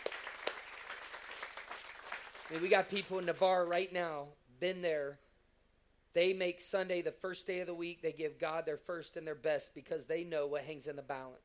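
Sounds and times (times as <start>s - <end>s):
sharp single claps: 0.0s - 2.7s
crowd clapping: 0.0s - 3.9s
speech: 2.5s - 5.2s, 6.1s - 11.4s.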